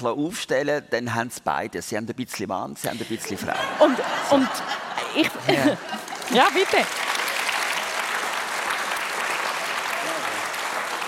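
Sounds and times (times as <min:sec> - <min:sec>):
speech: 0:00.0 - 0:07.1
laughter: 0:02.9 - 0:06.9
audience applause: 0:03.8 - 0:11.0.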